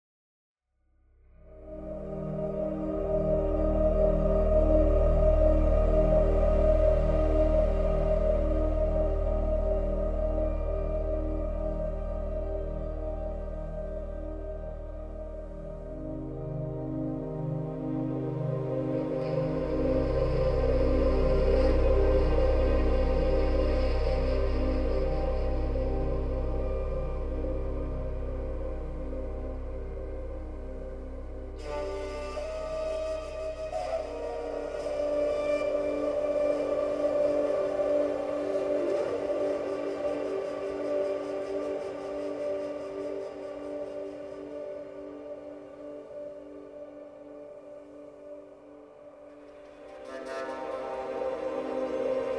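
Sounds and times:
electronic flutes: 1.3s - 52.3s.

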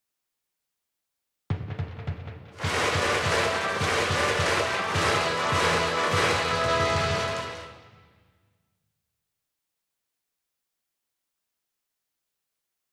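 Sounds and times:
brass band playing: 2.6s - 8.0s.

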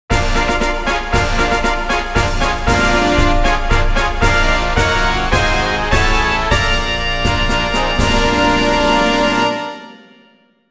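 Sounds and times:
race fanfare: 0.1s - 10.6s.

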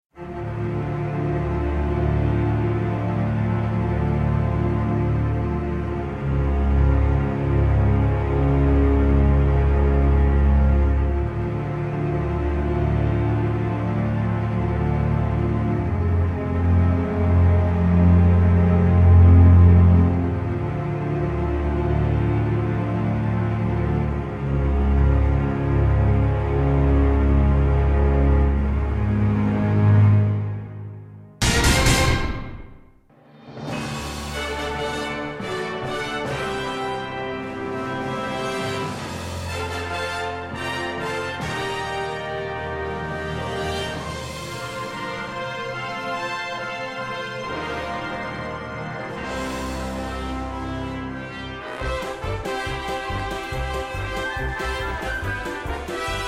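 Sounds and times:
cutscene music: 0.2s - 56.2s.

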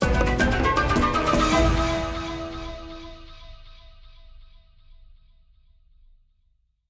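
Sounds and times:
in-game lava level background music: 0.0s - 3.3s.

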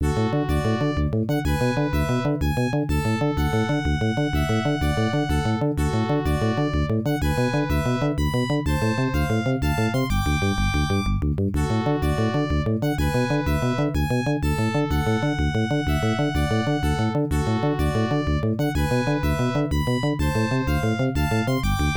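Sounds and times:
unused background music: 0.0s - 21.9s.

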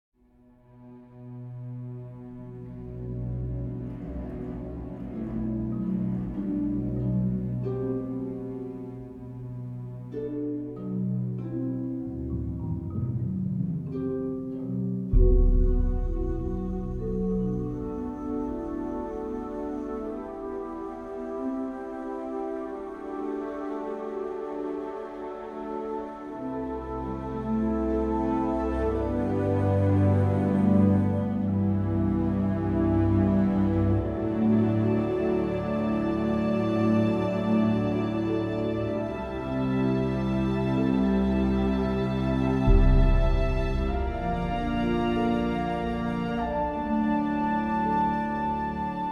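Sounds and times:
tension music: 0.5s - 49.1s.

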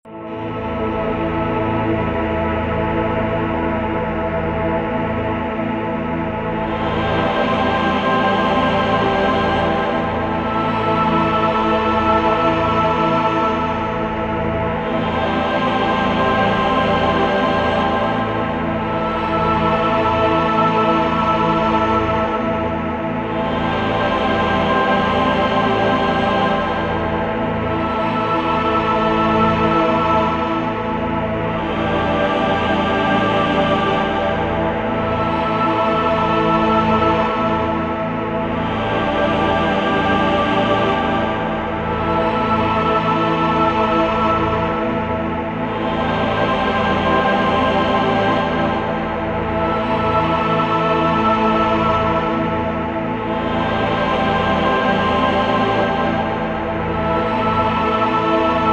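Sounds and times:
choirs: 0.0s - 58.7s.

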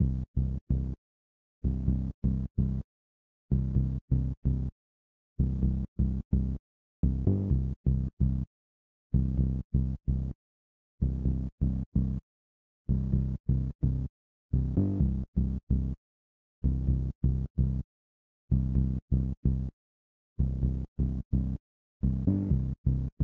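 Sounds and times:
bass: 0.0s - 1.0s, 1.6s - 2.9s, 3.5s - 4.8s, 5.4s - 8.5s, 9.1s - 10.4s, 11.0s - 12.3s, 12.9s - 16.0s, 16.6s - 17.9s, 18.5s - 19.8s, 20.4s - 23.2s.

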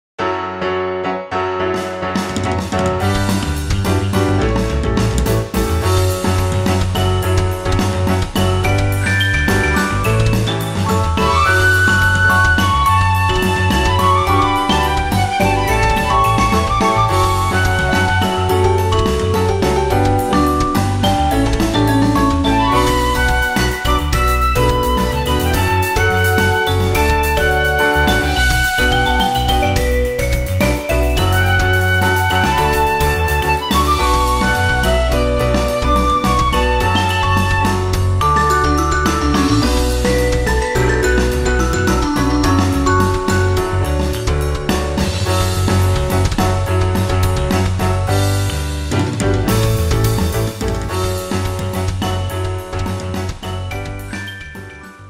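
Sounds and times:
forest RPG background music: 0.7s - 55.0s.

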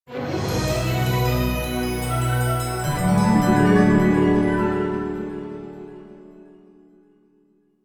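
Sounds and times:
music studio logo jingle: 1.1s - 6.6s.

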